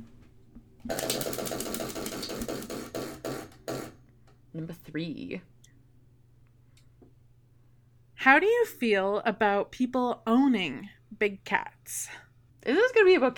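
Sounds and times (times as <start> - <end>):
question prize wheel spinning and clicking: 0.9 - 4.0
speech: 4.6 - 5.6, 8.2 - 13.3.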